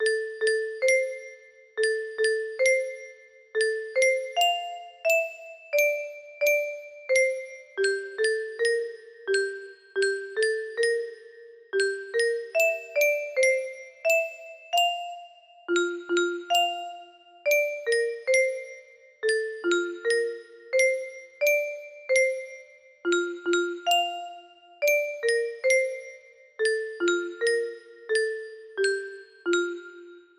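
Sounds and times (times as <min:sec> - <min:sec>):
simple lullaby music box melody: 0:00.0 - 0:30.3.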